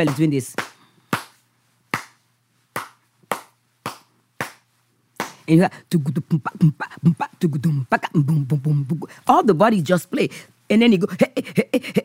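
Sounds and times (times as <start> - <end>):
speech: 0.0 - 0.7, 5.5 - 12.0
hand clapping a traditional rhythm: 0.0 - 5.5.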